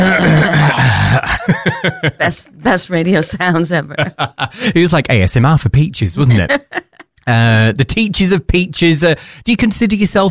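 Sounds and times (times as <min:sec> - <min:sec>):
person clearing throat: 0:00.0 - 0:01.9
laughter: 0:00.4 - 0:02.4, 0:03.8 - 0:04.8, 0:06.2 - 0:07.1
speech: 0:01.6 - 0:10.2.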